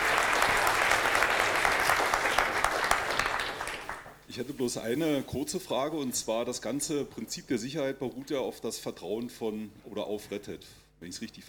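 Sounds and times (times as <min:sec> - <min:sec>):
audience applause: 0:00.0 - 0:04.1
speech: 0:04.4 - 0:11.4.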